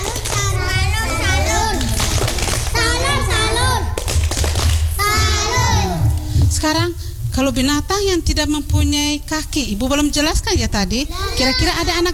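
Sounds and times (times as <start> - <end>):
group of children chanting in unison: 0.0 - 4.0, 5.0 - 6.2
children clapping and thumping in a steady rhythm: 0.0 - 6.3
speech: 6.7 - 12.1.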